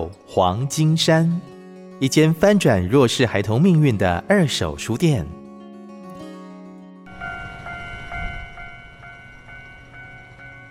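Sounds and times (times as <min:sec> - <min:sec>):
speech: 0:00.0 - 0:05.4
railway level crossing bells: 0:07.1 - 0:10.7
train: 0:07.1 - 0:10.7.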